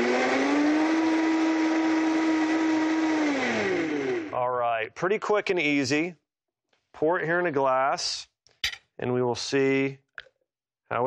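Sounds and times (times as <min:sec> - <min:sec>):
blender blending a chocolate drink: 0:00.0 - 0:04.4
speech: 0:04.9 - 0:06.2, 0:06.9 - 0:08.3, 0:09.0 - 0:10.0.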